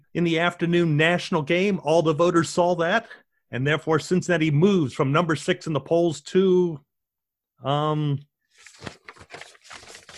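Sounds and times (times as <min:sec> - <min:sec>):
speech: 0:00.1 - 0:06.9, 0:07.6 - 0:09.4
paper rustling during a search for notes: 0:08.5 - 0:10.1.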